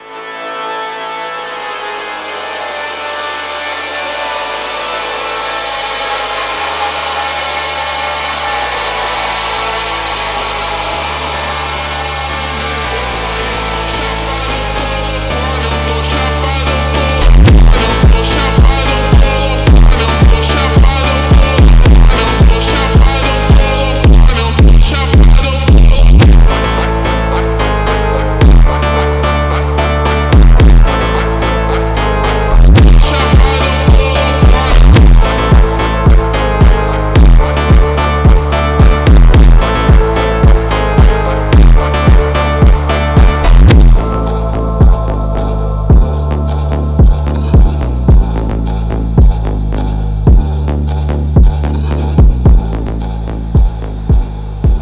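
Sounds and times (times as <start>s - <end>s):
slowed reverb music: 0.0s - 54.8s.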